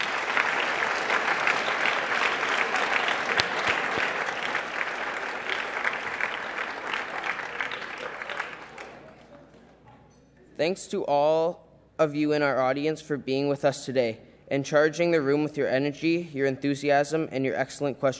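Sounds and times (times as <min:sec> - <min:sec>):
audience applause: 0:00.0 - 0:09.5
speech: 0:10.6 - 0:18.1.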